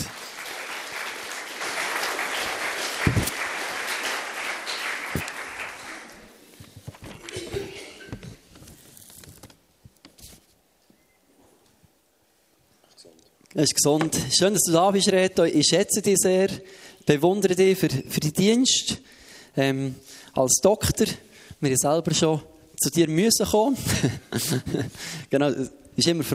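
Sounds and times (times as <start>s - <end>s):
audience applause: 0.0s - 6.4s
speech: 13.6s - 26.3s
laughter: 23.8s - 25.1s.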